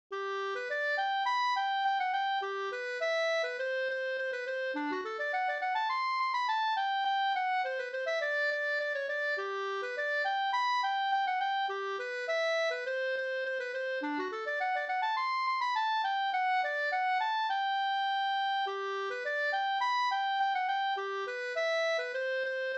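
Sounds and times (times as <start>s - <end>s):
polkett music: 0.2s - 22.7s.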